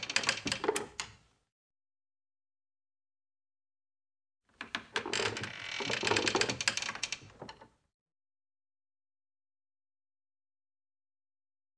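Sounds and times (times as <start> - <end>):
light wood creaking: 0.0 - 1.1, 4.6 - 7.8.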